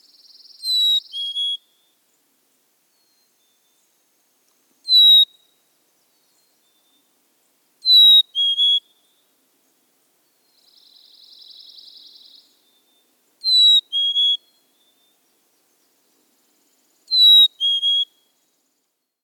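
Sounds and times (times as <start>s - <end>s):
Black-capped Chickadee calling: 0.6s - 1.6s, 4.8s - 5.3s, 7.8s - 8.8s, 13.4s - 14.5s, 17.1s - 18.2s.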